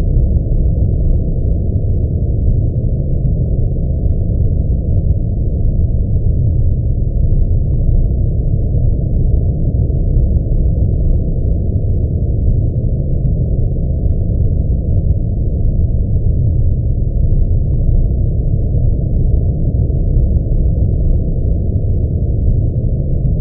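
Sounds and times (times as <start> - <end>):
cold underwater rumble drone: 0.0 - 23.3.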